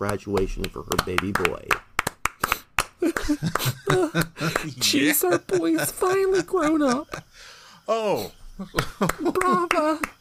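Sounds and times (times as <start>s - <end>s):
speech: 0.0s - 1.9s, 3.0s - 10.1s
hand claps: 0.0s - 4.8s, 8.8s - 10.1s
laughter: 3.0s - 7.4s, 8.2s - 10.1s.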